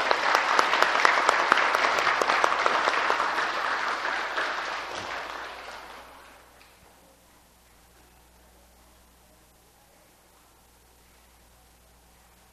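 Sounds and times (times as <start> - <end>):
audience applause: 0.0 - 6.6.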